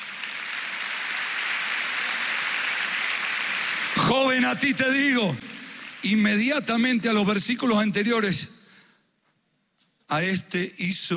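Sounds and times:
audience applause: 0.0 - 6.8
speech: 4.1 - 8.6, 10.1 - 11.1.

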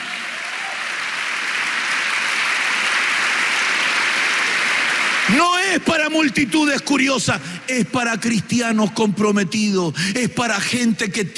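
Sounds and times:
audience applause: 0.0 - 6.4
speech: 5.3 - 11.3.

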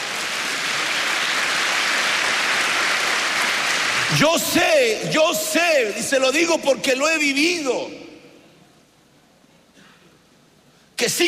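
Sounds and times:
audience applause: 0.0 - 4.5
speech: 4.1 - 8.0, 11.0 - 11.2.

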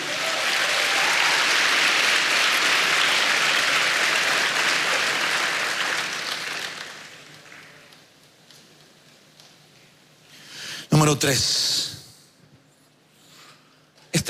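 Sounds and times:
audience clapping hands: 0.0 - 8.1
speech: 11.2 - 11.8.

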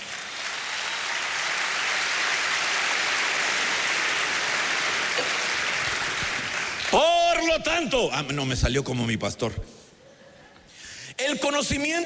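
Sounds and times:
audience clapping: 0.0 - 7.5
speech: 7.0 - 9.8, 11.4 - 12.0.

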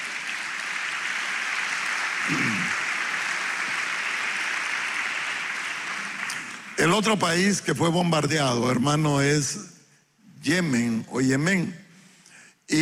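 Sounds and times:
audience applause: 0.0 - 7.1
speech: 2.3 - 2.8, 6.8 - 9.7, 10.4 - 11.8, 12.7 - 12.8.

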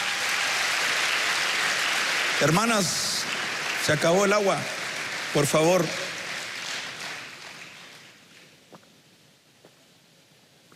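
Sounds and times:
audience applause: 0.0 - 8.5
speech: 2.4 - 6.0.

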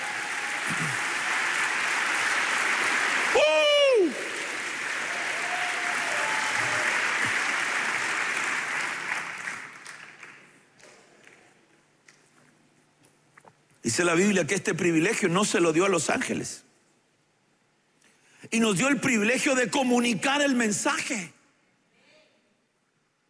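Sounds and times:
audience clapping: 0.0 - 12.2
speech: 14.0 - 16.7, 18.5 - 21.4.

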